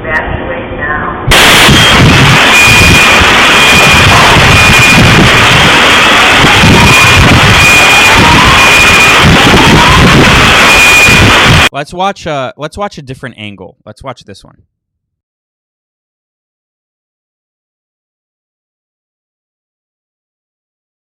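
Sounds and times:
explosion in played video footage: 1.3 - 11.7
speech: 11.8 - 14.8.

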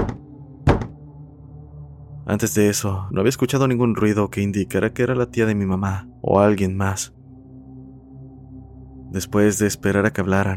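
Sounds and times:
slow knocks on house door: 0.0 - 1.0
speech: 2.3 - 7.2, 9.1 - 10.5.

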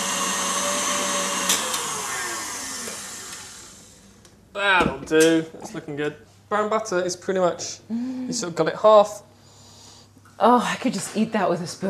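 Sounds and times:
electric mixer whipping cookie dough: 0.0 - 4.1
speech: 4.6 - 9.3, 10.4 - 11.8.

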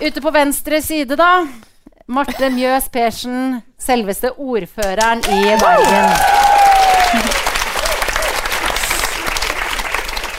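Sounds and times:
speech: 0.0 - 6.4, 7.1 - 7.4
audience applause: 5.2 - 10.3.

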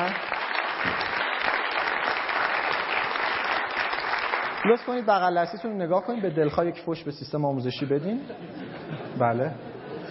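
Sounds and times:
audience applause: 0.0 - 5.3
speech: 4.6 - 9.8
laughter: 8.0 - 10.0.

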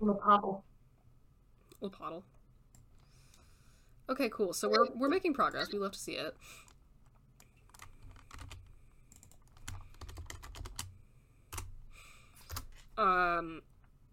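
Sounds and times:
speech: 0.0 - 0.7, 1.8 - 2.4, 4.1 - 6.7, 13.0 - 13.7
rapid typing on a computer keyboard: 7.4 - 10.9, 12.4 - 12.8.

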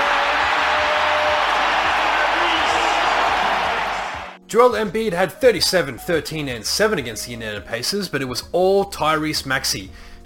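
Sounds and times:
arena crowd chanting: 0.0 - 4.4
speech: 4.5 - 10.2.

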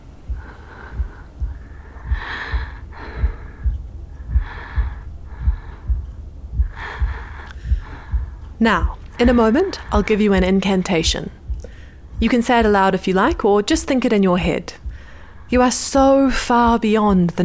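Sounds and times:
slow breathing in and out: 0.0 - 12.2, 14.8 - 15.5
soft low thumping: 0.0 - 17.4
speech: 8.6 - 11.4, 12.2 - 14.8, 15.5 - 17.4.

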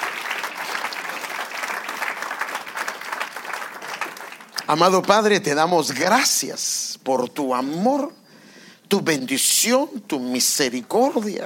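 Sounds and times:
audience applauding: 0.0 - 5.0
speech: 4.7 - 8.2, 8.9 - 11.4.

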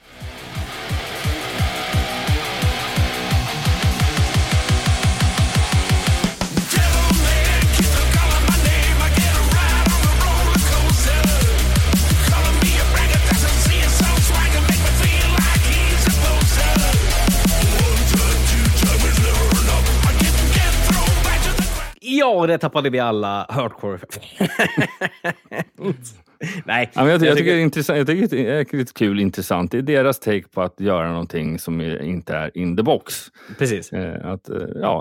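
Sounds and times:
remixed version of a metal song: 0.0 - 22.0
speech: 22.4 - 35.0
laughter: 24.2 - 27.5.

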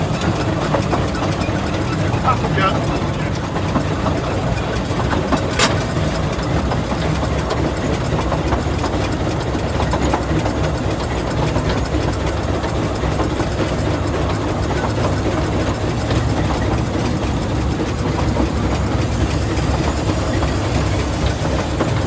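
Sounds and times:
steam engine on the Talyllyn Railway idling: 0.0 - 22.0
sharp click: 5.5 - 5.9.

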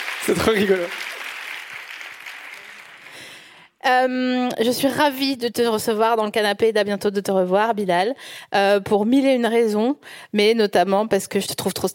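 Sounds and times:
audience applause: 0.0 - 3.6
speech: 0.2 - 1.1, 3.8 - 11.9.

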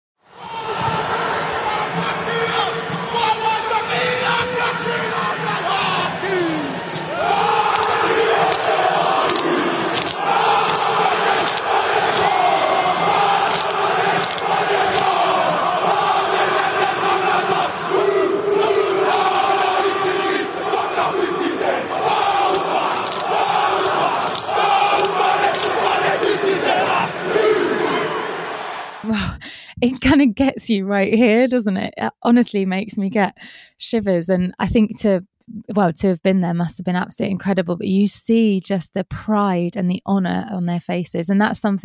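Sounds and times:
rhythmical crowd shouting before rugby international: 0.2 - 29.1
speech: 30.1 - 41.8.

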